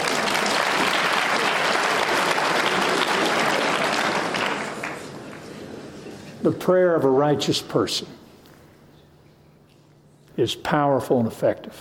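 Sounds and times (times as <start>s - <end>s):
audience applause: 0.0s - 5.6s
speech: 6.4s - 8.2s, 10.4s - 11.8s.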